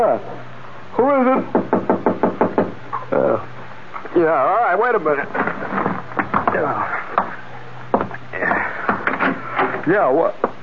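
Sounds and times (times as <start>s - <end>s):
speech: 0.0s - 1.6s, 4.2s - 5.9s, 6.6s - 7.1s, 9.8s - 10.5s
knocking on a door: 1.5s - 2.8s, 7.9s - 9.4s.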